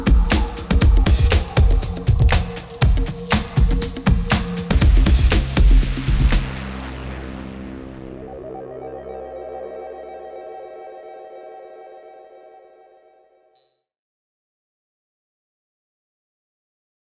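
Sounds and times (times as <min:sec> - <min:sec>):
percussion: 0:00.0 - 0:08.3.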